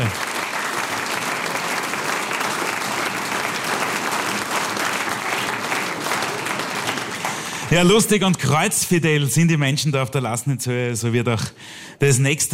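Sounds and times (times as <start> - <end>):
audience applause: 0.0 - 8.6
speech: 7.7 - 12.5.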